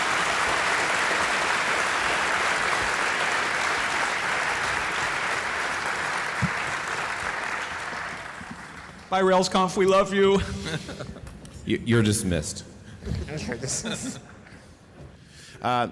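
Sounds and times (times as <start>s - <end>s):
audience applause: 0.0s - 9.1s
speech: 9.1s - 12.7s, 13.3s - 14.3s, 15.6s - 15.9s
laughter: 10.2s - 11.5s, 13.1s - 14.7s.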